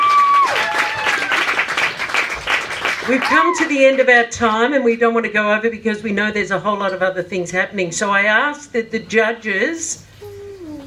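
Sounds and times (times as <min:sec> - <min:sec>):
audience applause: 0:00.0 - 0:03.7
speech: 0:03.1 - 0:10.1.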